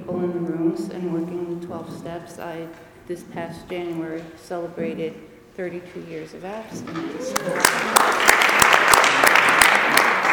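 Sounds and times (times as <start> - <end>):
speech: 1.0 - 8.0
crowd applauding: 6.9 - 10.3.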